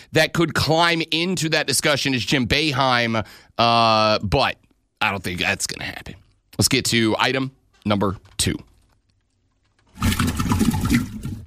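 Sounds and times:
speech: 0.0 - 8.7
aggressive water gurgle: 9.9 - 11.4.

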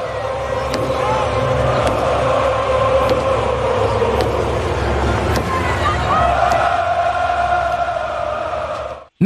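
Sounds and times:
huge stadium crowd chanting: 0.0 - 9.1
steady drum beats: 0.5 - 6.9.

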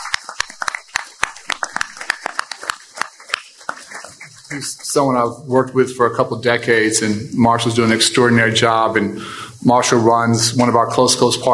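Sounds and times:
audience round of applause: 0.0 - 5.4
speech: 4.5 - 11.5.

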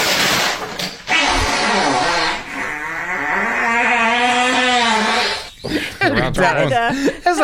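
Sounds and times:
fart: 0.0 - 5.6
laughter: 5.6 - 7.4.

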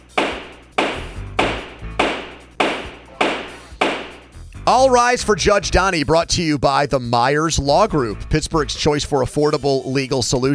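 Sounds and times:
gavel pounding: 0.0 - 4.4
speech: 4.7 - 10.5.

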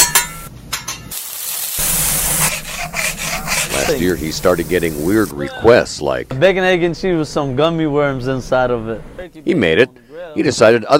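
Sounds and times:
food frying on a bodega grill at a Red Hook sandwich counter: 1.1 - 5.4
speech: 3.9 - 10.9.

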